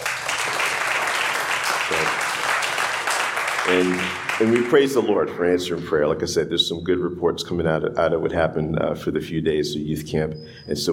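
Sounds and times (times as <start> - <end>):
round of applause: 0.0 - 5.2
speech: 3.7 - 10.9.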